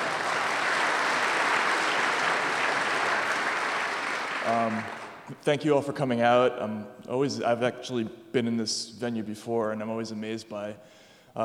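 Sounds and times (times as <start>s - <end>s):
audience applause: 0.0s - 5.3s
speech: 4.5s - 11.4s.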